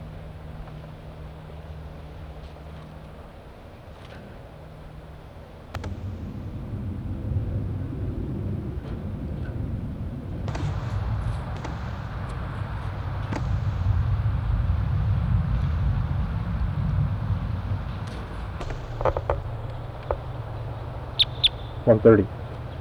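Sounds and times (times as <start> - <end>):
low rumbling hum: 5.8 - 22.7
wild birds chirping and squawking: 18.6 - 22.6.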